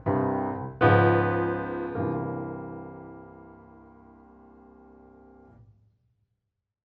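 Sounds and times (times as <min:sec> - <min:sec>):
jazz playalong music: 0:00.1 - 0:03.4.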